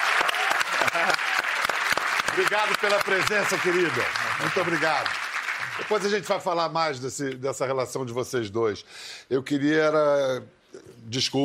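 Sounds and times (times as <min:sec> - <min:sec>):
group applauding: 0:00.0 - 0:06.6
speech: 0:02.4 - 0:05.2, 0:05.8 - 0:11.4.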